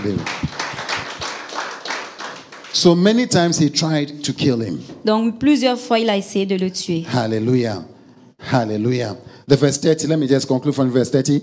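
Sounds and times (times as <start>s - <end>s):
speech: 0.0s - 0.6s, 2.8s - 11.4s
audience clapping: 0.0s - 3.5s.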